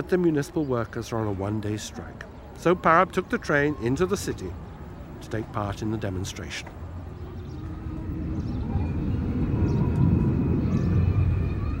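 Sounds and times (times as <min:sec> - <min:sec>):
speech: 0:00.0 - 0:04.6, 0:05.2 - 0:06.8
Boeing 747 airliner gliding in to land over the Western Ghats: 0:06.6 - 0:11.7.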